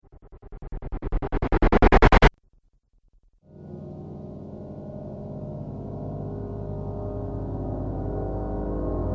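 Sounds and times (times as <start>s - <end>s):
cinematic riser: 0.0s - 2.3s.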